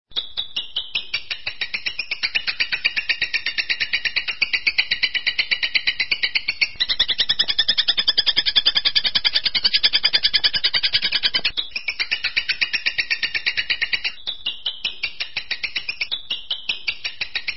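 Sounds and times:
long-tailed shrike harsh chattering song: 0:00.2 - 0:17.5.

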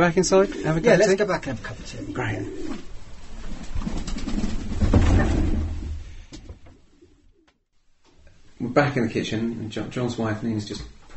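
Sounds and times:
speech: 0:00.0 - 0:02.9, 0:08.8 - 0:11.1
pigeons cooing: 0:00.1 - 0:04.8.

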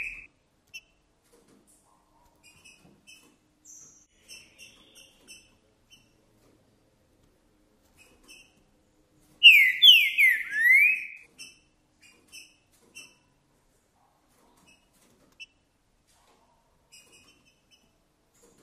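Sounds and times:
green-winged saltator whistled song: 0:09.4 - 0:11.2.

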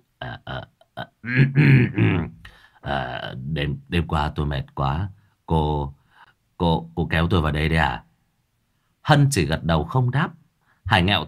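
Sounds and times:
throat clearing: 0:00.2 - 0:02.6
speech: 0:01.3 - 0:06.0, 0:06.6 - 0:08.0, 0:09.0 - 0:11.2.

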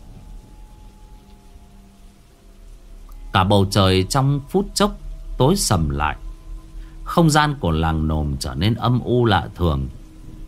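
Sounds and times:
faint low sustained tonal hum: 0:00.0 - 0:10.4
heavy rain pouring during a thunderstorm: 0:00.0 - 0:10.4
speech: 0:03.4 - 0:06.2, 0:07.1 - 0:10.0.

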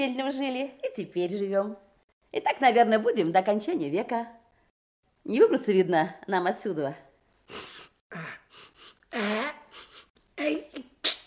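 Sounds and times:
speech: 0:00.0 - 0:04.4, 0:05.2 - 0:09.6
person straining to sneeze after sniffing tobacco: 0:07.4 - 0:09.0
sharp hissing exhale: 0:07.5 - 0:09.0.

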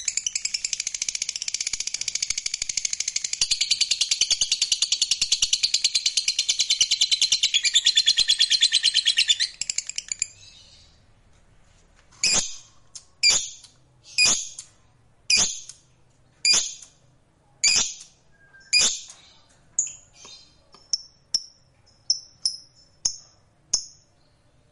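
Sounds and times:
fighter-type lovebird chirps: 0:00.0 - 0:11.0, 0:12.2 - 0:15.8, 0:16.4 - 0:17.0, 0:17.6 - 0:24.5.

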